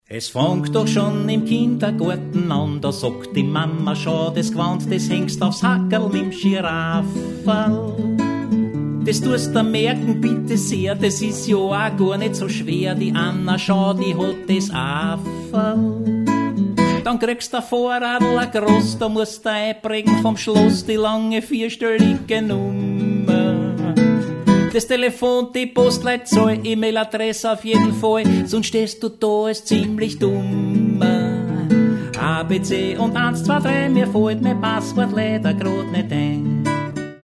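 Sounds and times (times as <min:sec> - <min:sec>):
blues song: 0:00.3 - 0:37.1.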